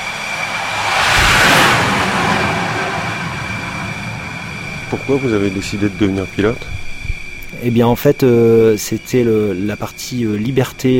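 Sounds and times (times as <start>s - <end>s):
jet catapulted off an aircraft carrier: 0.0s - 5.2s
speech: 4.9s - 6.8s, 7.6s - 10.9s.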